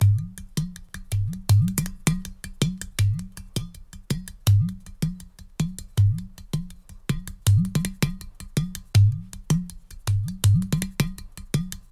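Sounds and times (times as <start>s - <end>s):
udu drum loop at 80 bpm: 0.0s - 11.9s.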